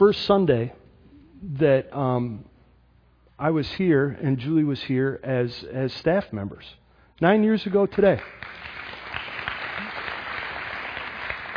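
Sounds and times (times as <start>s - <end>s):
speech: 0.0s - 0.8s, 1.4s - 2.5s, 3.4s - 8.6s
audience applause: 8.2s - 11.5s.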